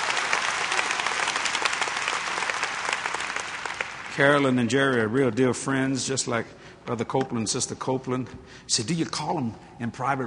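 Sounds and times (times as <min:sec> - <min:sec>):
audience clapping: 0:00.0 - 0:04.6
speech: 0:04.2 - 0:10.2.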